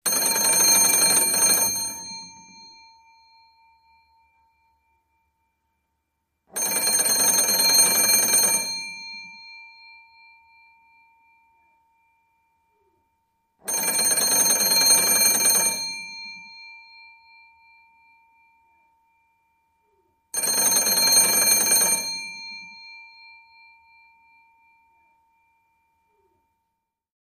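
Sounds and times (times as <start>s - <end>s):
old telephone ringing: 0.0s - 4.4s, 6.5s - 11.6s, 13.6s - 18.4s, 20.4s - 25.0s.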